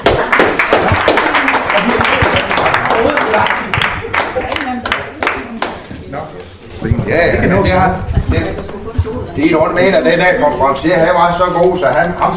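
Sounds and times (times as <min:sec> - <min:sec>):
audience applause: 0:00.0 - 0:05.8
murmuring voices: 0:00.8 - 0:10.9
speech: 0:07.1 - 0:08.1, 0:09.4 - 0:12.3.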